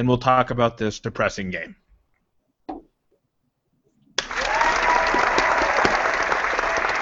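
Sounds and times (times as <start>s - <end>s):
speech: 0.0s - 1.8s
audience clapping: 4.2s - 7.0s.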